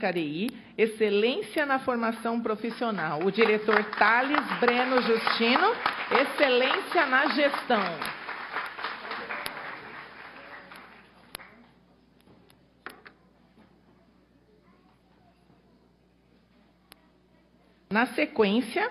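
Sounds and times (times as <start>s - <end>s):
speech: 0.0s - 8.2s, 18.0s - 18.8s
audience applause at award ceremony: 3.2s - 11.6s.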